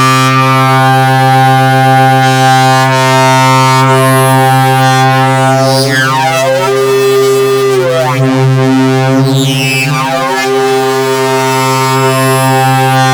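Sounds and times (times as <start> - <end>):
synth note C3: 0.2 - 13.1.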